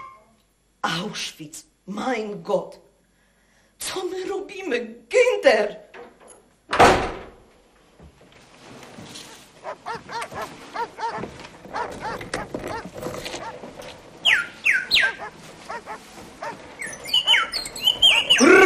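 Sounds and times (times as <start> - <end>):
speech: 1.1 - 2.9, 3.9 - 5.8
European robin calling loudly: 9.6 - 13.6, 14.2 - 18.6.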